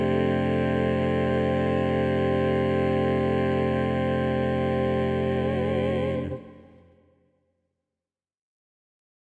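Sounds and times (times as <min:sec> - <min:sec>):
SATB four-part choir singing: 0:00.0 - 0:06.9.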